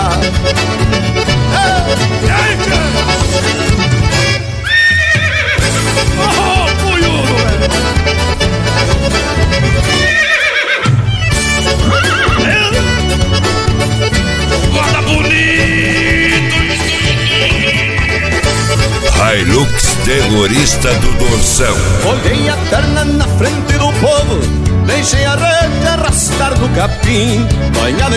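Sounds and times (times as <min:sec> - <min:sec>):
musical backing: 0:00.0 - 0:28.1
black horse whinnying: 0:04.1 - 0:06.2, 0:09.7 - 0:19.1
speech: 0:26.8 - 0:28.1.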